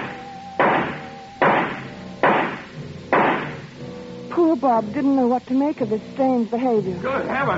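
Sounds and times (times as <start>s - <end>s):
gunshots from a gun fired at a tree: 0.0s - 3.7s
speech: 4.4s - 7.5s.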